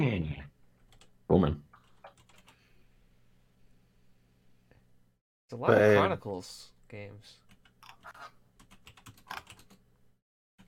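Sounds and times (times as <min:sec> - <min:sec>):
speech: 0:00.0 - 0:00.5, 0:01.3 - 0:01.6, 0:05.5 - 0:07.4
typing on a computer keyboard: 0:00.9 - 0:01.1, 0:01.8 - 0:02.6, 0:07.5 - 0:09.8.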